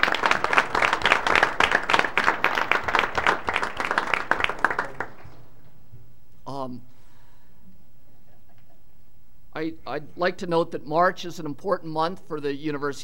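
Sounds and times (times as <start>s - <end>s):
audience applause: 0.0s - 5.4s
speech: 9.9s - 13.0s.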